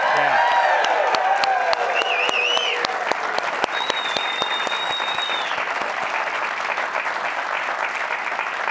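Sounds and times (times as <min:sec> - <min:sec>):
live studio audience at a BYU men's basketball show applauding and cheering: 0:00.0 - 0:08.6
whistles from the studio audience: 0:01.9 - 0:02.9, 0:03.6 - 0:05.7.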